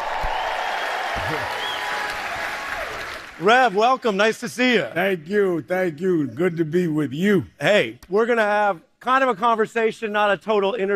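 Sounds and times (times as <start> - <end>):
audience applauding for Reverend Al Sharpton: 0.0 - 4.2
audience cheering for Reverend Al Sharpton: 0.0 - 4.3
speech: 3.4 - 10.9.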